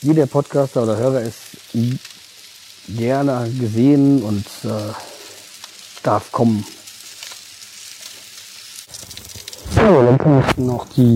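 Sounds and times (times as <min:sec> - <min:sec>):
speech: 0:00.0 - 0:02.1, 0:02.9 - 0:05.1, 0:06.0 - 0:06.8, 0:10.1 - 0:11.1
sausages sizzling on a grill: 0:00.0 - 0:11.1.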